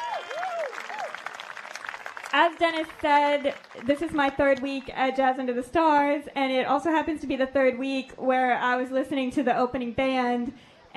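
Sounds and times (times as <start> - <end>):
audience applauding: 0.0 - 4.9
speech: 2.3 - 10.9.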